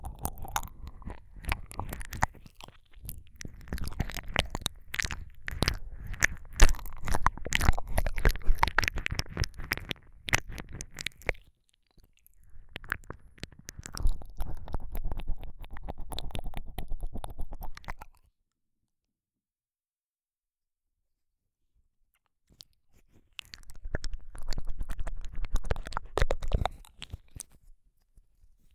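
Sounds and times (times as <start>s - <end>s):
various ASMR ear licking sounds: 0.0s - 11.5s, 12.4s - 18.1s, 23.4s - 27.6s.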